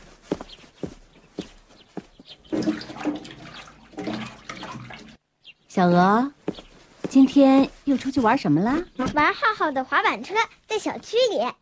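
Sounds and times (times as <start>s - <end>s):
soft uneven footsteps: 0.0s - 3.3s, 6.4s - 9.4s
tap water running with splashing: 2.4s - 5.2s
speech: 5.8s - 6.4s, 7.1s - 11.6s.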